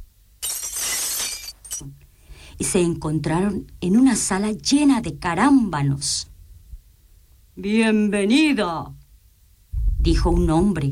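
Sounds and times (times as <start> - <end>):
ice palace walls shattering sound effect: 0.4 - 1.9
small tinkling clinks: 0.4 - 2.0
speech: 1.8 - 2.0, 2.6 - 6.3, 7.6 - 9.0, 10.0 - 10.9.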